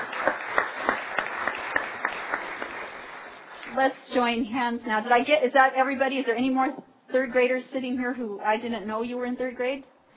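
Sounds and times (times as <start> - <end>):
audience clapping: 0.0 - 3.8
speech: 3.8 - 9.9.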